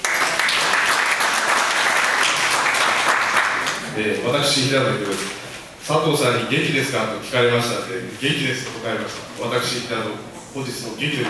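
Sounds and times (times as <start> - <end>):
audience applause: 0.0 - 3.9
speech: 4.0 - 11.2.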